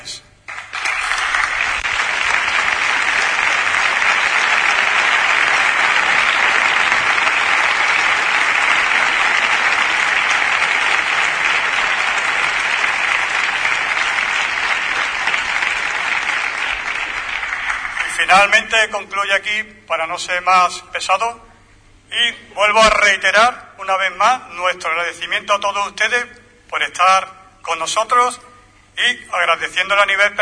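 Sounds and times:
audience applause: 0.5s - 18.5s
speech: 18.4s - 21.5s, 22.1s - 30.4s.

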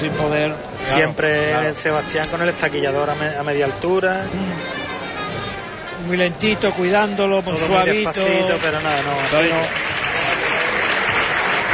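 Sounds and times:
speech: 0.0s - 4.8s, 6.0s - 9.9s
audience applause at a bullfight: 8.0s - 11.7s.

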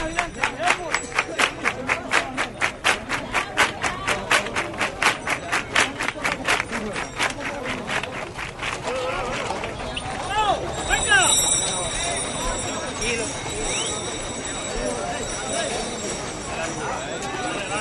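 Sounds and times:
pilgrims clapping hands rhythmically: 0.0s - 11.7s
murmuring voices: 0.0s - 17.7s.

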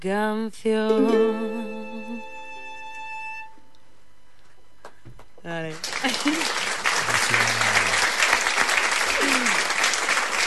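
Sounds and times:
speech: 0.0s - 1.8s, 5.4s - 7.6s
applause: 5.6s - 10.4s.

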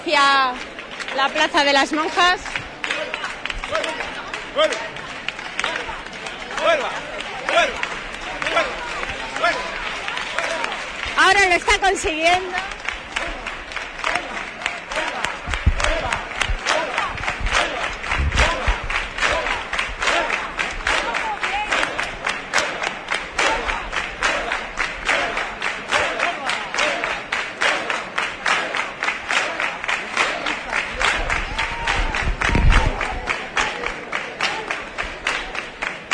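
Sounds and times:
speech: 0.0s - 2.5s, 3.7s - 5.0s, 6.6s - 7.9s, 8.5s - 8.8s, 11.2s - 12.8s
large crowd clapping rhythmically outdoors at a demonstration: 0.0s - 36.1s
murmur of voices: 0.0s - 36.1s
low thumps: 15.5s - 20.0s.

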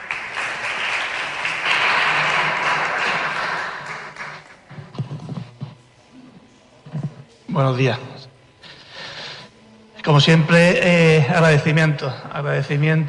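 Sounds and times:
audience applause: 0.0s - 4.7s
speech: 7.6s - 8.1s, 10.1s - 13.0s.

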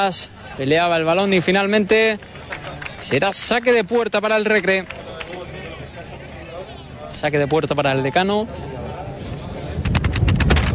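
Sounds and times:
speech: 0.0s - 5.0s, 7.1s - 8.8s
strong wind blowing into the microphone: 9.0s - 10.7s.

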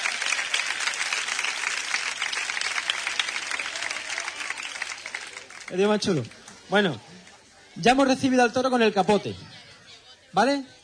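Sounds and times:
applause: 0.0s - 7.3s
speech: 5.7s - 7.2s, 7.8s - 9.5s, 10.3s - 10.8s.

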